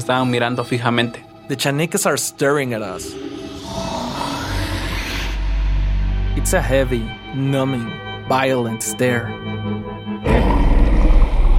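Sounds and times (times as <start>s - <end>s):
speech: 0.0s - 4.2s, 6.4s - 9.6s
beast growling: 2.9s - 5.9s, 10.2s - 11.5s.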